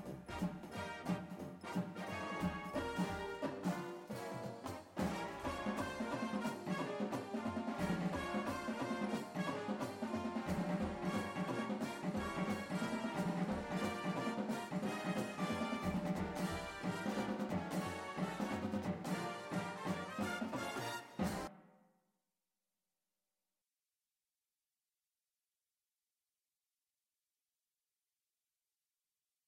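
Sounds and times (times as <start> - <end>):
tenor drums with music: 0.0 - 21.7.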